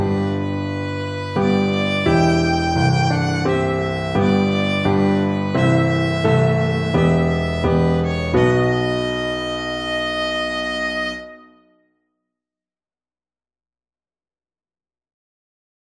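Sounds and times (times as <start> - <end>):
violin theme: 0.0 - 11.8.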